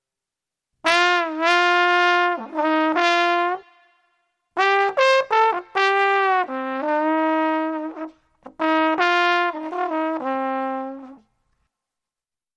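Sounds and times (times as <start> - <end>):
sad blues trombone: 0.9 - 3.7, 4.6 - 11.2.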